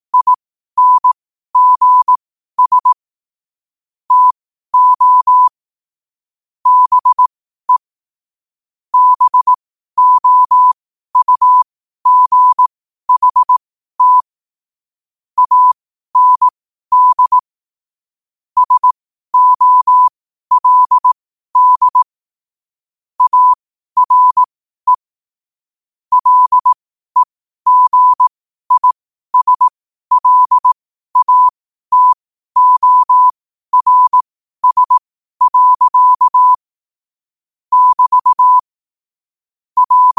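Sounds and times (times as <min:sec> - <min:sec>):
morse code at 5 wpm: 0:00.1 - 0:03.0, 0:04.1 - 0:05.5, 0:06.6 - 0:07.8, 0:09.0 - 0:14.3, 0:15.4 - 0:17.4, 0:18.6 - 0:22.1, 0:23.2 - 0:25.0, 0:26.1 - 0:36.7, 0:37.7 - 0:38.7, 0:39.8 - 0:40.1.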